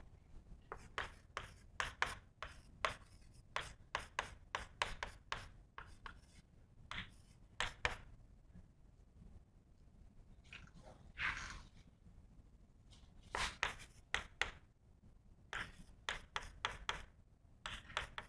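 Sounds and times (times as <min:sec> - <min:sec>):
writing on a board during a physics lecture: 0:00.7 - 0:08.1, 0:13.3 - 0:14.7, 0:15.5 - 0:17.1, 0:17.7 - 0:18.2.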